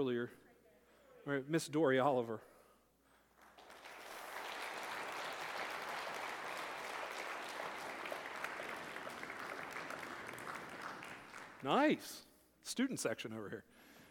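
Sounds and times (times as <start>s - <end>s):
speech: 0.0s - 0.5s, 1.2s - 2.5s, 11.6s - 13.9s
audience applause: 3.4s - 11.8s.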